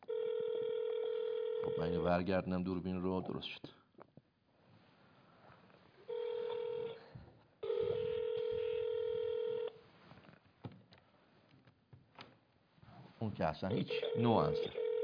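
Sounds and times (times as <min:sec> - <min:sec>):
phone call dialing and ringing tone: 0:00.1 - 0:02.1, 0:06.1 - 0:07.0, 0:07.6 - 0:09.8, 0:13.7 - 0:15.0
speech: 0:01.7 - 0:03.8, 0:13.4 - 0:14.8.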